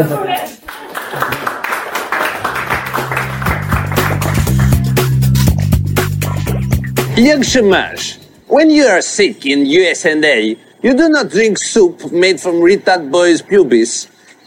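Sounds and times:
speech: 0.0s - 1.2s, 7.2s - 14.4s
audience applause: 0.6s - 5.3s
low musical tone: 2.5s - 8.4s.

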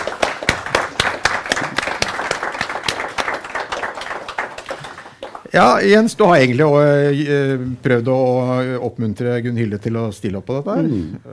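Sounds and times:
audience applause: 0.0s - 6.0s
speech: 5.5s - 11.3s.

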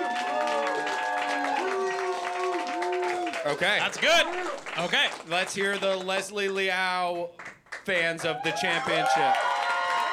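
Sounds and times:
cheers and whoops: 0.0s - 3.6s, 8.3s - 10.1s
crowd applauding: 0.0s - 6.7s, 7.4s - 10.1s
speech: 3.4s - 9.5s.

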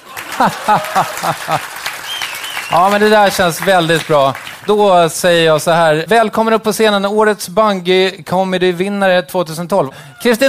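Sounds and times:
audience laughing: 0.0s - 3.7s
audience clapping: 0.0s - 5.7s
speech: 0.4s - 1.8s, 2.7s - 10.4s.

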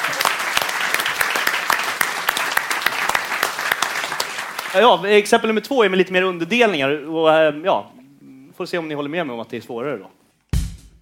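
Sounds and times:
audience applause: 0.0s - 5.0s
speech: 4.7s - 8.0s, 8.6s - 10.2s.

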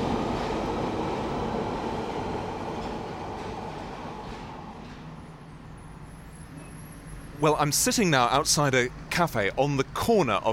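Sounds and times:
London Underground tube train rumble and rattle: 0.0s - 7.4s
speech: 7.4s - 10.5s.

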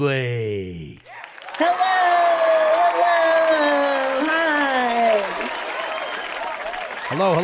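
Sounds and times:
speech: 0.0s - 1.0s, 7.2s - 7.4s
studio audience clapping: 0.9s - 7.4s
person whooping: 1.1s - 6.3s.

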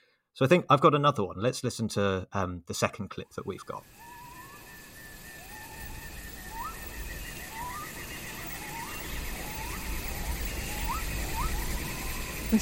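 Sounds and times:
speech: 0.4s - 4.1s
cicadas: 3.5s - 12.6s
different animals calling: 3.6s - 12.6s.

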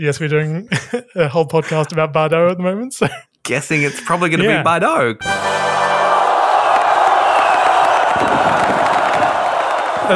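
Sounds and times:
speech: 0.0s - 5.7s
laughter: 0.7s - 2.0s
crowd cheering and roaring with whoops and shouts: 5.4s - 10.1s.

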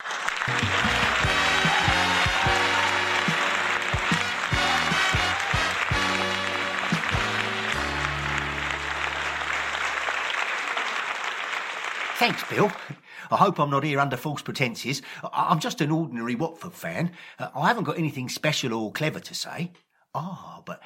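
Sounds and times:
audience applause greeting a guest onto a chat-show stage: 0.0s - 13.0s
speech: 0.5s - 0.9s, 12.2s - 20.8s.

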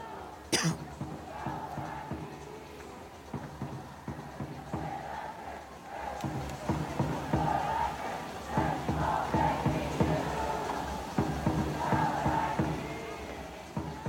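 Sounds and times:
Angel City FC soccer fans cheering in a stadium: 0.0s - 14.0s.

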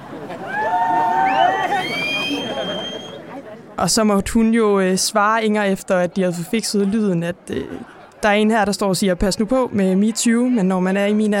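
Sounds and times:
crowd chatter: 0.0s - 11.3s
audience whooping and hollering: 0.3s - 3.2s
audience high sliding whistles: 1.2s - 3.2s
speech: 3.8s - 11.3s.

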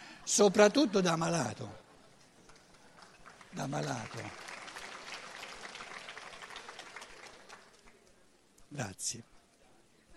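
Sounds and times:
speech: 0.3s - 1.8s, 3.6s - 4.4s, 8.7s - 9.3s
applause: 0.4s - 8.2s.

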